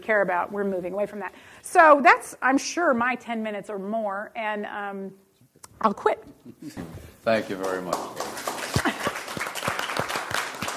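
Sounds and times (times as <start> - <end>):
speech: 0.0 - 5.2, 5.8 - 8.4
sparse audience clapping after a talk on inequality and climate: 7.3 - 10.7.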